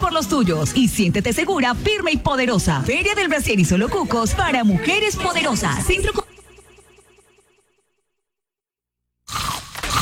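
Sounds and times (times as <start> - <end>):
speech: 0.2 - 6.3
crunchy peanut snack being bitten: 9.3 - 10.0.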